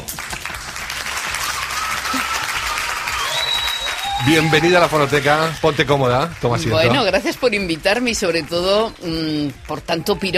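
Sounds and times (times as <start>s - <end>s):
audience applause: 0.0s - 10.2s
faint cheering or whistles: 1.3s - 5.6s
speech: 4.2s - 10.3s.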